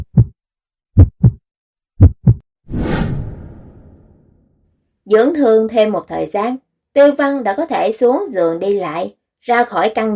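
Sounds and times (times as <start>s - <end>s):
pounding heartbeat sound effect: 0.0s - 0.4s, 1.0s - 1.4s, 2.0s - 2.4s
speech: 5.1s - 10.1s.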